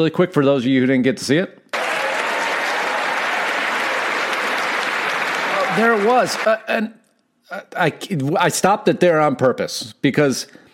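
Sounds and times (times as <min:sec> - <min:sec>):
speech: 0:00.0 - 0:01.6, 0:05.8 - 0:10.6
derogatory clapping: 0:01.7 - 0:06.6.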